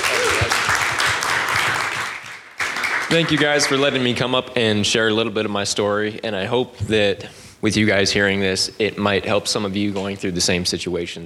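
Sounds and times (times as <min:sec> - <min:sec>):
church audience applause: 0:00.0 - 0:04.0
speech: 0:03.1 - 0:11.2.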